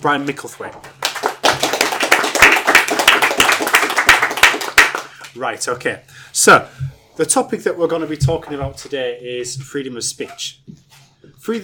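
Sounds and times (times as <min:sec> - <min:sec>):
speech: 0:00.0 - 0:01.0, 0:05.4 - 0:11.6
applause from a small group: 0:00.8 - 0:05.4.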